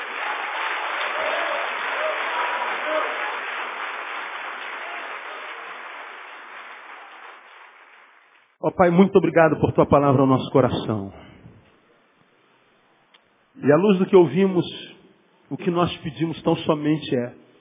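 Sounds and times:
audience applauding loudly: 0:00.0 - 0:08.6
speech: 0:08.6 - 0:11.2, 0:13.6 - 0:14.8, 0:15.5 - 0:17.4.

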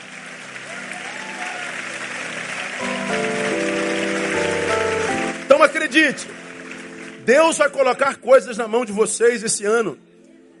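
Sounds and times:
audience applause: 0:00.0 - 0:08.2
speech: 0:05.6 - 0:06.5, 0:07.2 - 0:10.0.

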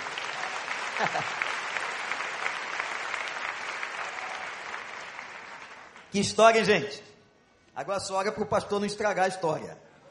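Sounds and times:
church congregation applause after a Bible reading: 0:00.0 - 0:06.6
laughter: 0:00.9 - 0:01.5
speech: 0:01.0 - 0:01.6, 0:06.1 - 0:07.1, 0:07.8 - 0:09.8.

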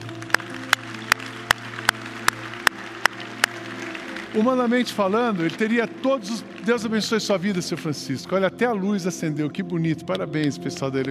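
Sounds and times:
audience applause: 0:00.0 - 0:08.2
speech: 0:04.3 - 0:11.0.

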